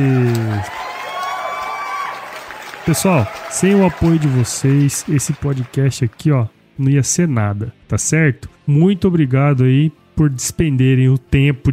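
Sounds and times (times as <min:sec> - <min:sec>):
applause: 0:00.0 - 0:06.3
speech: 0:02.9 - 0:11.7.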